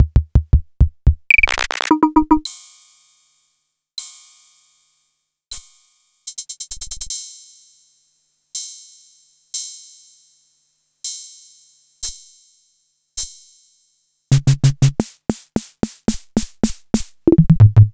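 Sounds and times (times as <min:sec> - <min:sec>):
Vermona DRM2 drum machine: 0:00.0 - 0:02.4, 0:14.3 - 0:17.9.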